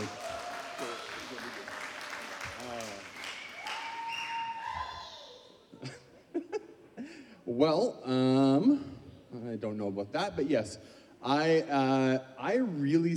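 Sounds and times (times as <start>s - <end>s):
audience round of applause: 0.0s - 5.0s
speech: 7.6s - 13.1s.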